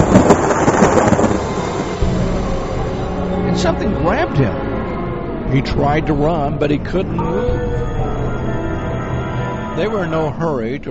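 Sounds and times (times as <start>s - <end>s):
violent thunder clap: 0.0s - 10.4s
speech: 3.6s - 4.7s, 5.5s - 8.0s, 9.8s - 10.8s.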